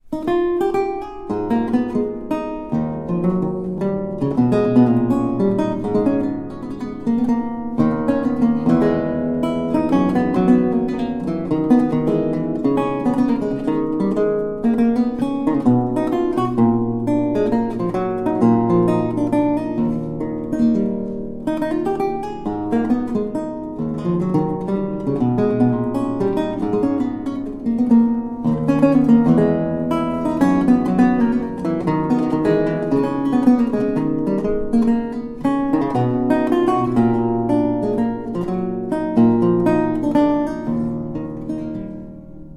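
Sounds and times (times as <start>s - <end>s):
lute courante: 0.0s - 42.5s.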